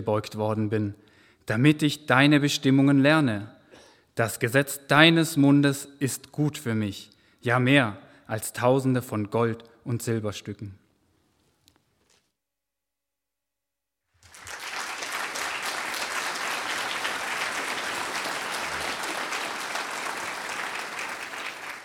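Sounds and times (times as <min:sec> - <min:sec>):
speech: 0:00.0 - 0:03.6, 0:04.2 - 0:10.8
audience applause: 0:14.2 - 0:21.8.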